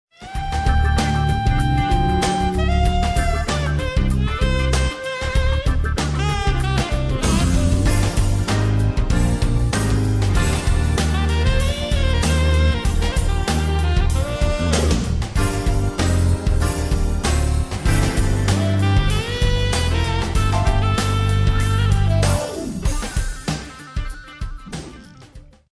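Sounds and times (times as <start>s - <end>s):
jazz funk music: 0.1s - 25.6s.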